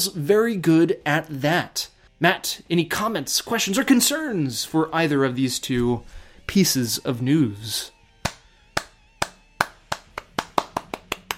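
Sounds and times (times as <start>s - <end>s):
speech: 0.0s - 8.0s
one person clapping hands: 8.2s - 11.3s.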